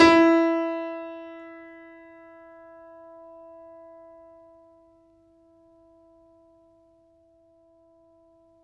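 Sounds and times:
grand piano note recorded off mic: 0.0 - 3.3.

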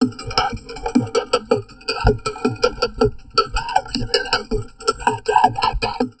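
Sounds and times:
heavily processed drum loops: 0.0 - 6.1.

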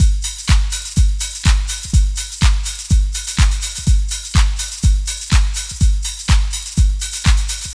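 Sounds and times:
industrial techno music: 0.0 - 7.7.

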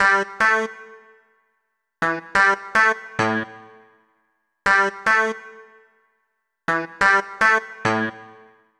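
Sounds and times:
roots funk synth: 0.0 - 1.2, 2.0 - 3.9, 4.7 - 5.9, 6.7 - 8.7.

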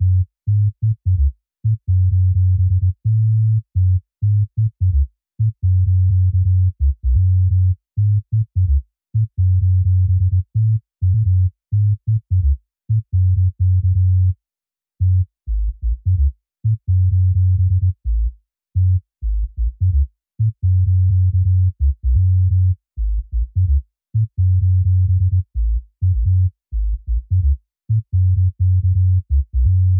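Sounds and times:
128 BPM sub bass in F sharp minor: 0.0 - 14.4, 15.0 - 29.9.

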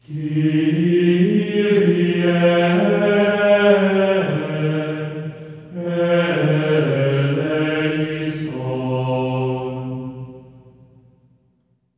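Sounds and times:
voices singing in F4: 0.0 - 10.5.

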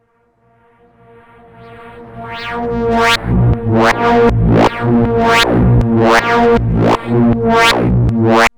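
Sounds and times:
synth pads: 1.7 - 8.5
drum and bass music: 2.8 - 8.5.

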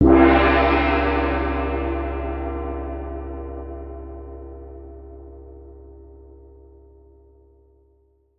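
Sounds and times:
cymbals: 0.0 - 4.3
36 inch gong: 0.0 - 7.2.

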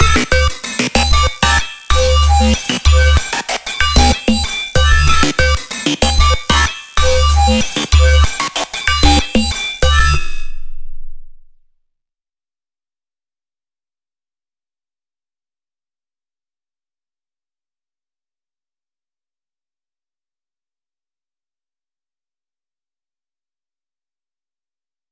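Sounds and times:
plinking bass: 0.0 - 10.6.

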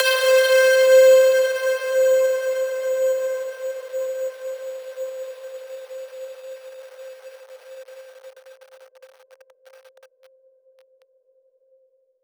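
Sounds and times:
very large bell: 0.0 - 6.6.

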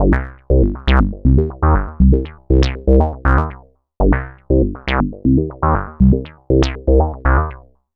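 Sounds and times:
proto-techno bassline: 0.0 - 7.6.

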